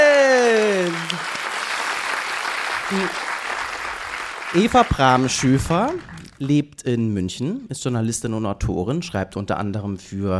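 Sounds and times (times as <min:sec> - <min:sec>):
applause: 0:00.0 - 0:06.5
speech: 0:02.9 - 0:03.2, 0:04.6 - 0:10.3.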